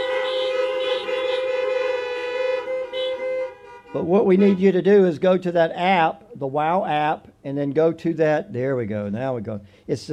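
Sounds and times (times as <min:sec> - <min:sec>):
horn honk welcoming guests: 0:00.0 - 0:05.0
speech: 0:03.9 - 0:10.1.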